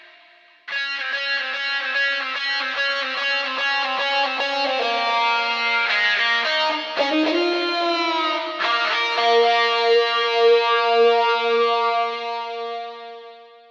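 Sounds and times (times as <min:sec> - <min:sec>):
electric guitar riff processed with wah wah: 0:00.7 - 0:13.6.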